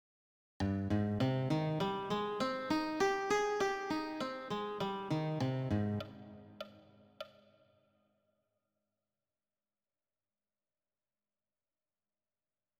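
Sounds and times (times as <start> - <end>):
arpeggios: 0.7 - 6.6.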